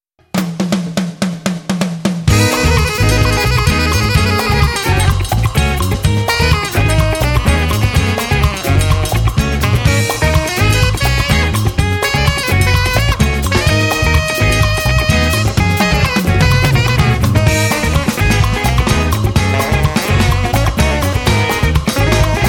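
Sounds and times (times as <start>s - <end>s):
samba music: 0.4s - 22.4s.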